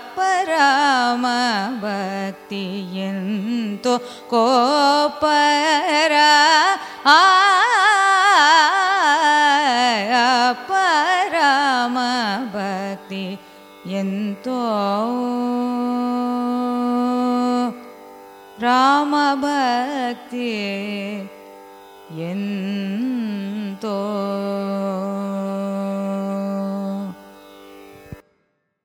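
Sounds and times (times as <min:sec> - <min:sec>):
carnatic raga music: 0:00.0 - 0:28.8.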